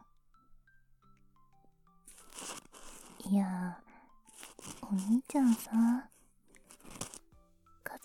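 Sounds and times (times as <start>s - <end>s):
ear cleaning scratching: 2.1s - 3.4s, 4.3s - 7.3s.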